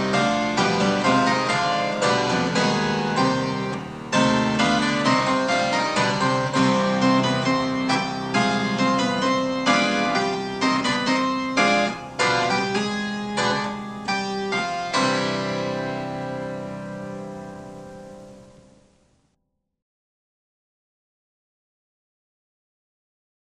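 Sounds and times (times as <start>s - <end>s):
fugue: 0.0s - 18.5s.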